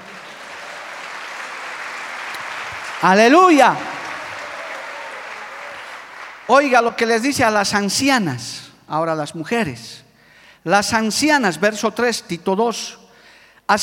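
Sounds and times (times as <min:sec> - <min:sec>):
audience applause: 0:00.0 - 0:06.8
speech: 0:03.0 - 0:03.9, 0:06.5 - 0:10.0, 0:10.6 - 0:13.0.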